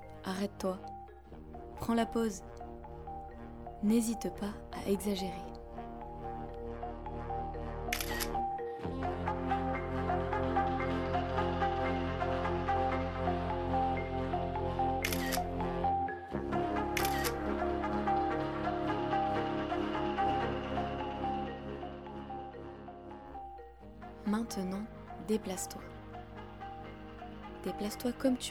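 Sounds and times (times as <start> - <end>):
quiet steady music: 0.0 - 28.4
speech: 0.4 - 0.9, 1.8 - 2.6, 3.8 - 5.5, 25.4 - 26.0, 27.6 - 28.4
camera shutter clicks: 7.9 - 8.4, 15.0 - 15.5, 17.0 - 17.4.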